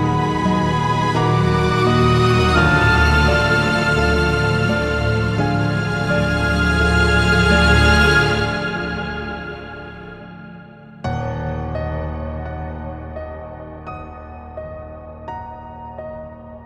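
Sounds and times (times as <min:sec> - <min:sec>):
halloween menu music: 0:00.0 - 0:12.4.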